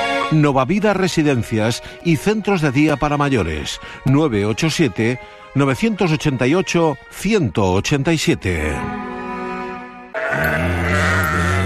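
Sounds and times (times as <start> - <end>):
speech: 0.3 - 9.1
sheep bleating: 10.1 - 11.6.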